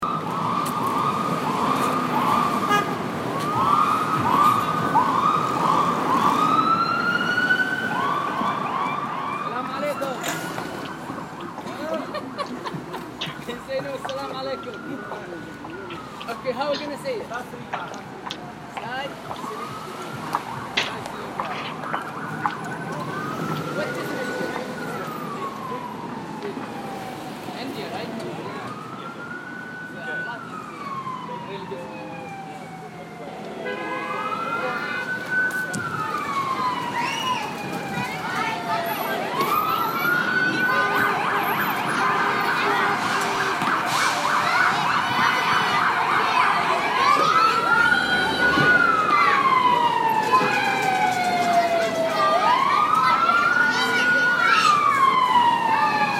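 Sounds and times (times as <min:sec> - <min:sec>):
New York City sounds: 0:00.0 - 0:56.1
laughter: 0:11.6 - 0:13.5.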